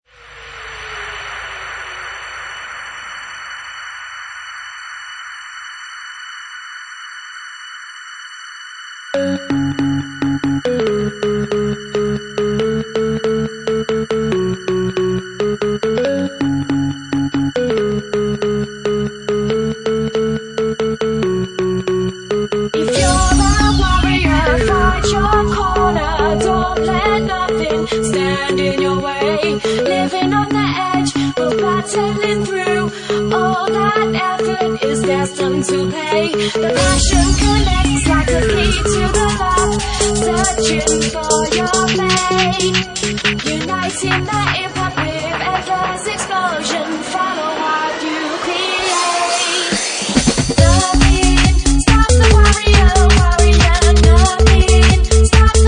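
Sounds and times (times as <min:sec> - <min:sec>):
bassline organ house remix: 0:09.2 - 0:55.6.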